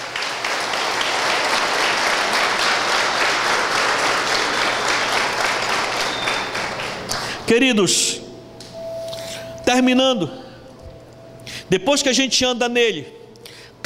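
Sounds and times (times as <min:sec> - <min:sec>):
sustained audience applause: 0:00.0 - 0:07.4
speech: 0:07.5 - 0:08.3, 0:09.7 - 0:10.4, 0:11.7 - 0:13.2.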